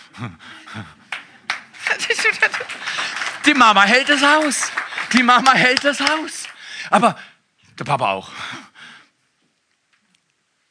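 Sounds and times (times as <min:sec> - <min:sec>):
speech: 0:00.2 - 0:01.0, 0:02.1 - 0:08.6
men clapping frenetically: 0:01.0 - 0:07.1
laughter: 0:01.8 - 0:05.3.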